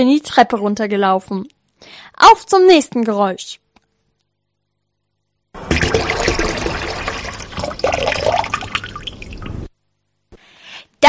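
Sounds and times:
speech: 0:00.0 - 0:03.6
water tap running: 0:05.6 - 0:09.7.

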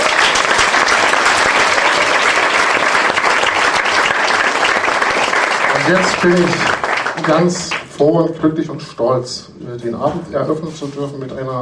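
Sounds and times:
audience applause: 0:00.0 - 0:07.9
speech: 0:05.9 - 0:11.5.

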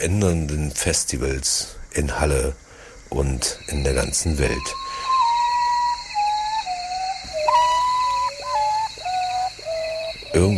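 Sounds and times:
speech: 0:00.0 - 0:04.8, 0:10.3 - 0:10.5
constant hiss: 0:00.0 - 0:10.5
potoo (urutau) mournful whistled call: 0:03.6 - 0:10.5.

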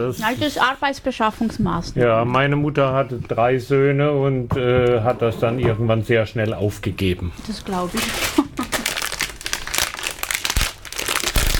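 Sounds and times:
speech: 0:00.0 - 0:08.5
underwear crinkling: 0:07.3 - 0:11.5.

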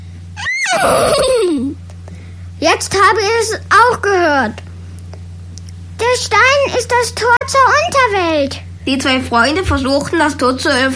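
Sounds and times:
low steady hum: 0:00.0 - 0:10.9
horse neighing: 0:00.4 - 0:01.5
speech: 0:00.7 - 0:01.8, 0:02.6 - 0:04.6, 0:06.1 - 0:10.9.

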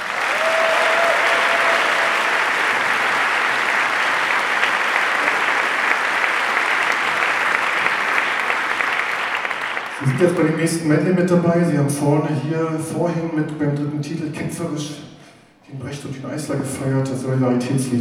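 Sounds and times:
audience applause: 0:00.0 - 0:10.5
speech: 0:10.2 - 0:15.1, 0:15.7 - 0:17.9.

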